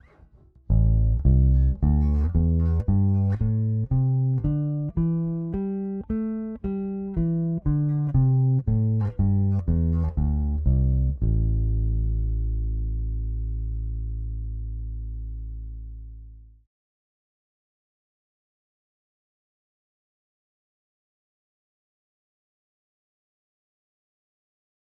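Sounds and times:
Aguilar Super Double active bass pickup: 0.0s - 16.6s.

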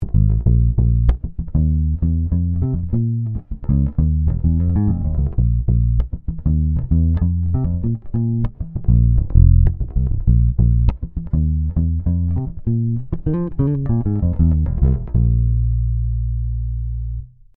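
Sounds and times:
Ibanez EHB1505 bass guitar with traditional passive neck pickup: 0.0s - 17.5s.

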